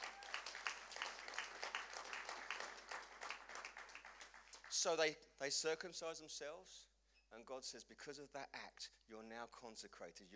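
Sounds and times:
audience applause: 0.0 - 4.9
speech: 4.8 - 10.3.

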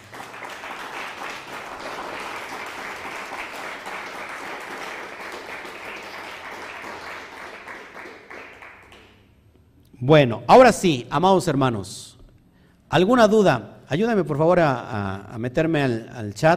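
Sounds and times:
audience applause: 0.0 - 9.2
speech: 10.0 - 12.1, 12.9 - 16.5.

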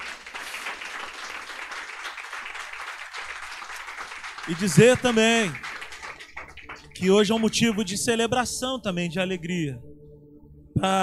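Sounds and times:
audience applause: 0.0 - 8.0
speech: 4.5 - 5.6, 7.0 - 9.9, 10.8 - 11.0.

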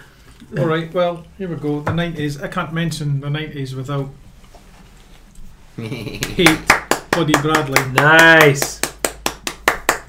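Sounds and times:
speech: 0.5 - 4.2, 5.8 - 8.8
sharp hand claps: 6.2 - 10.0.

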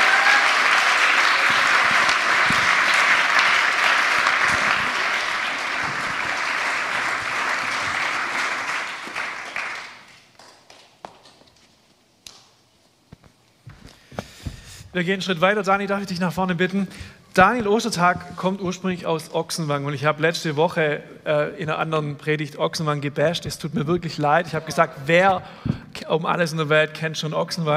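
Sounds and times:
audience applause: 0.0 - 10.9
speech: 15.0 - 27.7.

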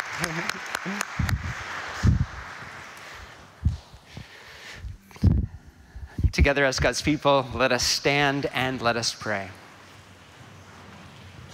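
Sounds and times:
crowd clapping: 0.0 - 3.6
speech: 0.2 - 2.2, 6.4 - 9.6.

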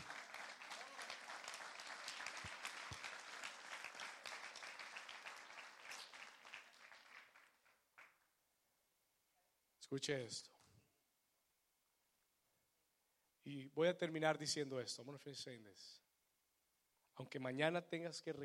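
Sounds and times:
audience applauding: 0.0 - 8.2
speech: 9.9 - 10.6, 13.5 - 16.0, 17.2 - 18.4.

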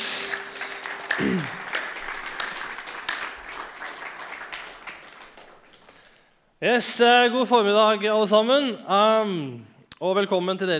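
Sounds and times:
audience applause: 0.0 - 6.3
speech: 1.2 - 1.6, 6.6 - 10.7.

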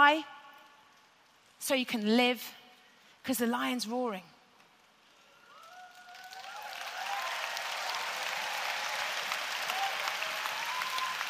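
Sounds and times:
speech: 0.0 - 0.4, 1.6 - 2.6, 3.2 - 4.3
audience whoops and cheers: 5.3 - 11.2
audience applause: 5.6 - 11.2.

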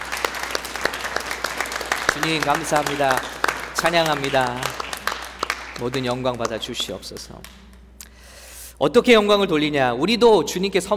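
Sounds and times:
audience applause: 0.0 - 7.6
speech: 2.2 - 4.8, 5.8 - 7.6, 8.8 - 10.9.

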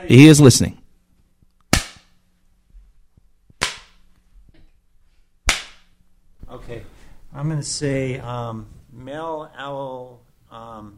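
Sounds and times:
speech: 0.0 - 0.8, 7.4 - 10.9
hand swatting a person's backside: 1.7 - 2.1, 3.5 - 4.0, 5.4 - 6.0.

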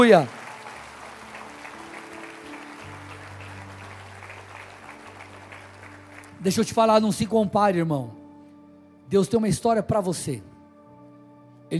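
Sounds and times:
speech: 0.0 - 0.4, 6.4 - 8.2, 9.1 - 10.5
audience applause: 0.0 - 6.5.

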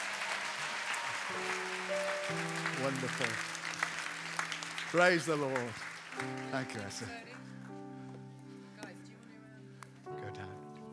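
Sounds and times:
audience clapping: 0.0 - 7.9
speech: 2.3 - 3.5, 4.9 - 7.5.

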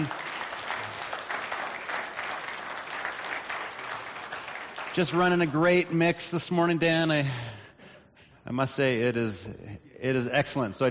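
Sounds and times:
audience applause: 0.0 - 6.0
speech: 5.0 - 7.5, 8.4 - 10.9.

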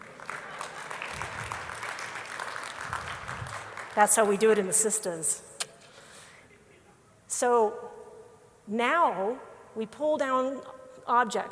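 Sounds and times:
audience clapping: 0.0 - 4.7
speech: 4.0 - 5.5, 7.4 - 7.9, 8.7 - 11.4.

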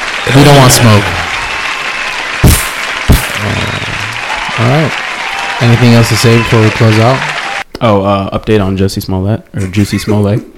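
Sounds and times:
brief applause: 0.0 - 7.7
speech: 0.3 - 1.4, 4.6 - 5.0, 5.6 - 10.5.

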